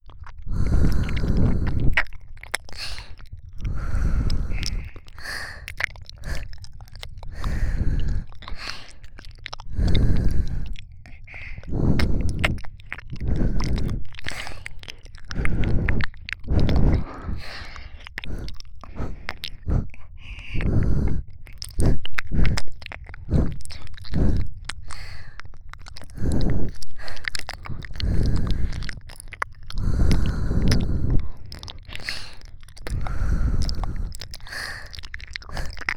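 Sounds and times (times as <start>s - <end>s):
ear licking: 0.0s - 35.9s.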